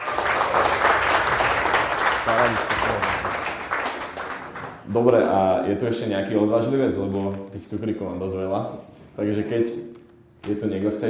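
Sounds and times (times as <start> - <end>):
audience applause: 0.0 - 4.9
speech: 2.3 - 2.7, 4.9 - 11.0.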